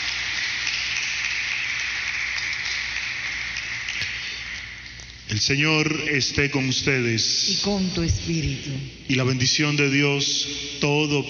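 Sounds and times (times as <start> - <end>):
audience applause: 0.0 - 4.9
speech: 5.4 - 11.2.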